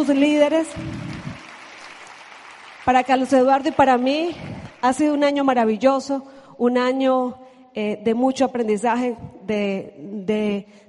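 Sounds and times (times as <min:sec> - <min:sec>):
speech: 0:00.0 - 0:01.0, 0:02.9 - 0:10.8
audience applause: 0:00.2 - 0:04.8.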